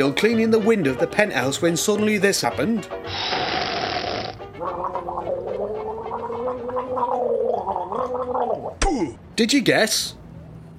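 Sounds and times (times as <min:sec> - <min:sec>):
speech: 0:00.0 - 0:03.6, 0:09.0 - 0:10.2
wine slurped and gargled at a wine tasting in a country house: 0:03.1 - 0:08.8.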